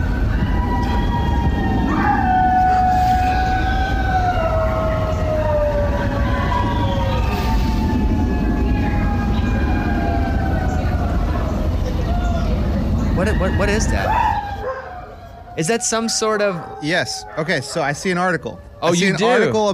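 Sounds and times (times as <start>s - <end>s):
neighbors howling outdoors: 0.0s - 19.7s
speech: 13.8s - 14.0s, 15.6s - 19.7s.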